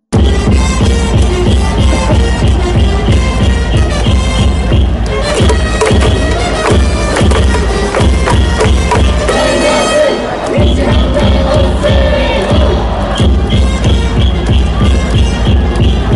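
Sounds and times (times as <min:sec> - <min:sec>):
steady drumbeats: 0:00.1 - 0:16.1
crowd roar inside Hanshin Koshien Stadium: 0:00.2 - 0:16.1
horns: 0:00.2 - 0:16.1
rhythmic crowd chanting: 0:05.1 - 0:16.1.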